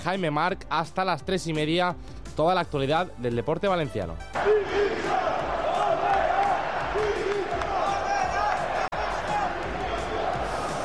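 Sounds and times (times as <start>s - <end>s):
speech: 0.0s - 5.4s
stadium crowd chanting for coach's resignation: 4.4s - 10.8s.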